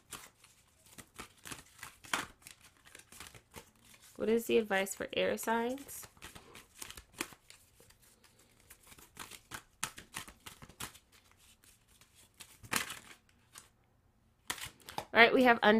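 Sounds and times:
tarot cards being handled: 0.0 - 4.2, 5.7 - 13.8, 14.4 - 15.1
speech: 4.2 - 6.1, 15.2 - 15.7.

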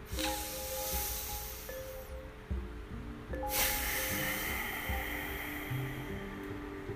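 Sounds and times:
ocean breath exhaled through the nose: 0.1 - 2.1, 3.5 - 6.8.

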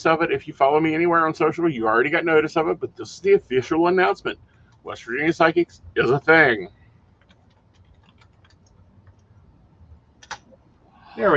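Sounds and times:
speech: 0.0 - 6.8, 11.2 - 11.3
low hum: 0.0 - 11.3
typing on a computer keyboard: 7.1 - 9.4, 10.2 - 10.6.

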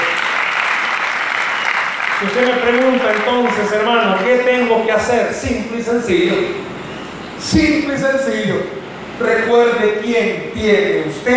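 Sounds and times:
audience applause: 0.0 - 4.7
speech: 2.2 - 6.7, 7.4 - 11.3.

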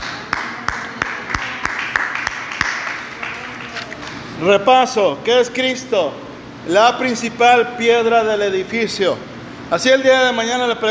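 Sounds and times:
audience applauding: 0.0 - 4.2
speech: 4.4 - 10.8.

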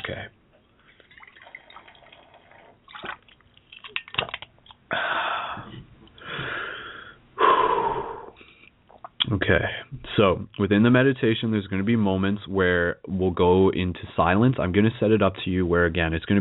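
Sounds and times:
person drinking water: 0.8 - 6.6
person catching breath: 4.9 - 8.7
speech: 9.5 - 16.3.

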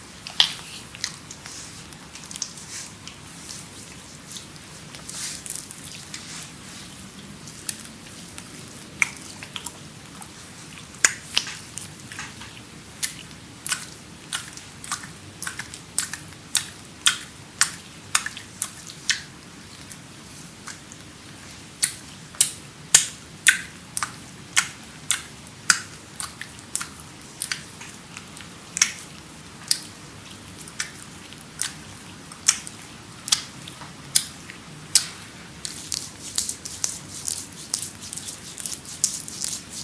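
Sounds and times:
creamy full-body massage with wet squishy clicks: 0.0 - 39.8
soft low rubbing murmur: 0.5 - 7.6, 35.7 - 39.8.

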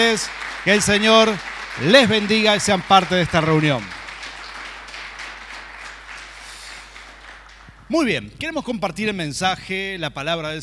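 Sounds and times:
speech: 0.0 - 4.0, 7.9 - 10.6
audience applause: 0.0 - 8.0.

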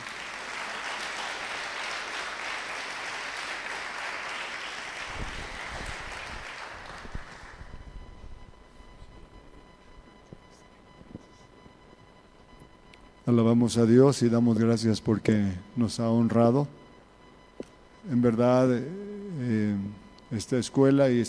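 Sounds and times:
audience applause: 0.0 - 7.7
speech: 13.3 - 16.8, 18.1 - 21.2.

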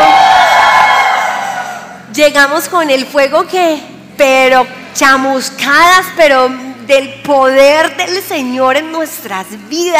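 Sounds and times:
audience shouting for joy: 0.0 - 2.0
speech: 2.2 - 9.9.

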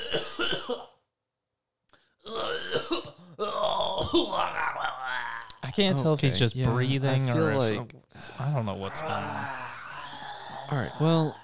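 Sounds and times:
person coughing harshly: 0.0 - 1.0, 2.3 - 4.5
speech: 5.8 - 9.6, 10.7 - 11.4.

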